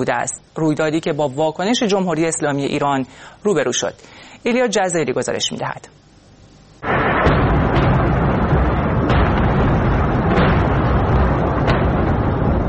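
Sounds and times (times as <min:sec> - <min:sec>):
speech: 0:00.0 - 0:06.0
missile strike explosions at a port: 0:06.8 - 0:12.6.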